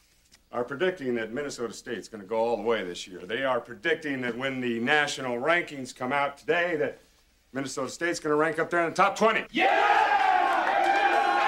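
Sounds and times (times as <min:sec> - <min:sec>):
speech: 0:00.5 - 0:10.1
large crowd cheering and roaring: 0:09.5 - 0:11.4.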